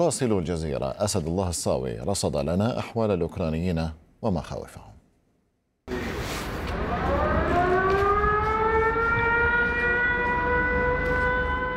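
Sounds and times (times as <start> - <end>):
speech: 0.0 - 4.9
air raid siren: 5.9 - 11.7.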